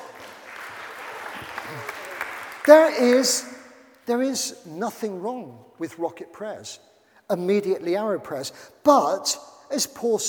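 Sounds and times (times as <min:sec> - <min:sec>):
audience applause: 0:00.0 - 0:03.3
speech: 0:01.7 - 0:02.0, 0:02.6 - 0:10.2.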